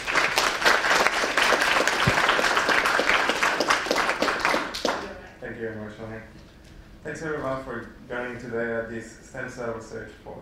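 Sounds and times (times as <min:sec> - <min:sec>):
audience applause at a stem cell research forum: 0:00.0 - 0:05.2
speech: 0:05.9 - 0:10.4.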